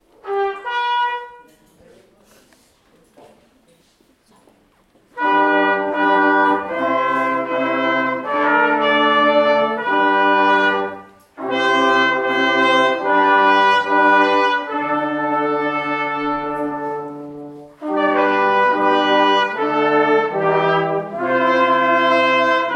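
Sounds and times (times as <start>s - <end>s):
concert music: 5.2s - 22.7s.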